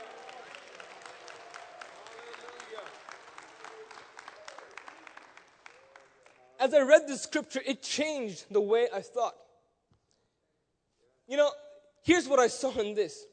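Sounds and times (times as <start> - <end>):
audience clapping: 0.0 - 6.6
speech: 6.6 - 9.4, 11.3 - 13.3.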